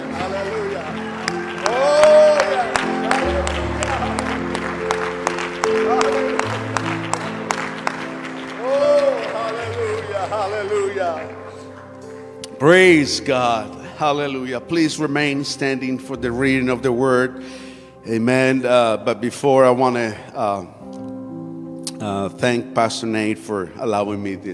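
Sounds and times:
audience cheering: 0.0 - 11.5
audience clapping: 0.0 - 13.5
speech: 12.7 - 20.8, 22.2 - 24.5.

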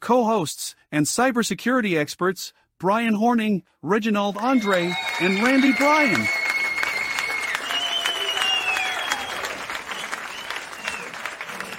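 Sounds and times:
speech: 0.0 - 6.4
live studio audience applause sound effect: 4.4 - 11.7.

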